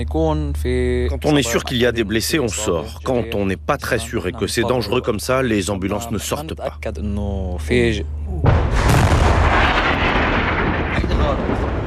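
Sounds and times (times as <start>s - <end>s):
speech: 0.0s - 8.9s
nearby artillery shell explosion at night: 8.4s - 11.8s.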